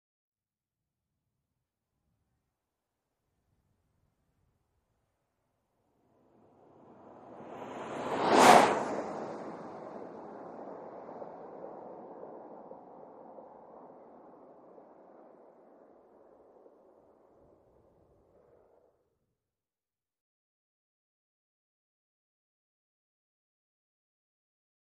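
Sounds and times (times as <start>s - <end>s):
SUV passing by at 100 mph: 6.2s - 16.4s.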